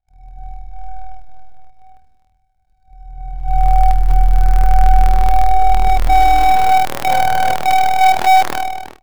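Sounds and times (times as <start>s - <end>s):
8-bit sequence: 3.6s - 9.0s.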